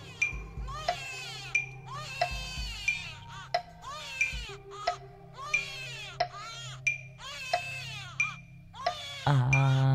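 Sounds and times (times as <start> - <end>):
child crying shrilly: 0.0 - 9.8.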